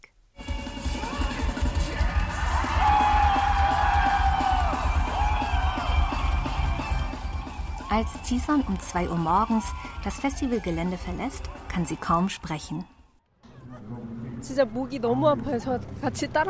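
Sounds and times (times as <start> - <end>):
low pounding rumble of rock music: 0.4 - 12.2
large festival crowd cheering at a rock concert: 0.9 - 13.8
speech: 8.0 - 13.0, 14.4 - 16.4.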